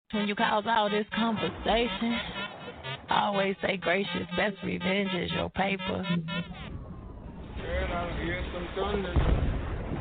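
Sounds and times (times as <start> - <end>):
speech: 0.1 - 2.4, 3.1 - 6.7, 7.9 - 9.5
thunder: 6.7 - 9.9.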